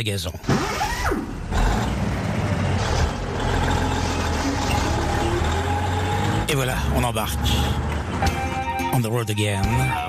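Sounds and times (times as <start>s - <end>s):
speech: 0.0s - 1.3s, 6.5s - 8.4s, 9.0s - 10.0s
heavy truck engine starting and idling: 1.2s - 8.9s.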